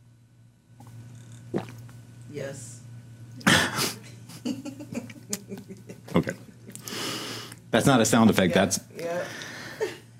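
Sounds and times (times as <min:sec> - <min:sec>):
gulping gurgle of a swallowed burp: 0:01.3 - 0:01.9
speech: 0:01.5 - 0:01.7, 0:02.3 - 0:02.8, 0:06.3 - 0:06.5, 0:07.8 - 0:09.4.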